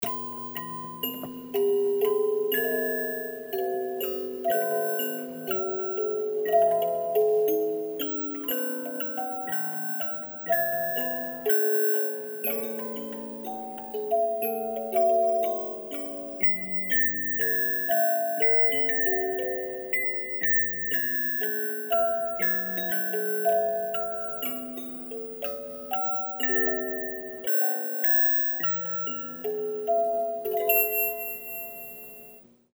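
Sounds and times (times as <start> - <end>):
chime: 0.0 - 32.5.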